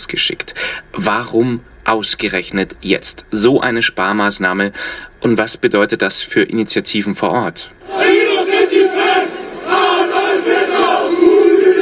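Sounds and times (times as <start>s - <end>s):
speech: 0.0s - 7.8s
far-right crowd chanting while marching through Chemnitz: 7.8s - 11.7s.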